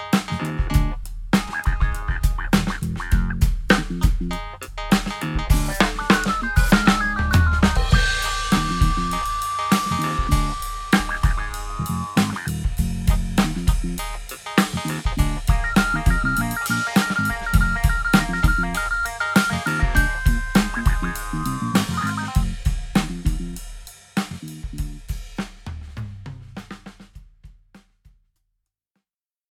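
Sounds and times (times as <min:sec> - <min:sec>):
ticky clavinet: 0:00.1 - 0:23.6.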